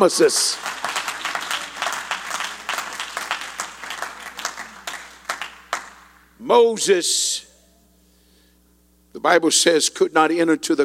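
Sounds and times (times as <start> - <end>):
speech: 0.0 - 0.8, 6.5 - 7.5, 9.2 - 10.8
audience clapping hands: 0.0 - 6.3.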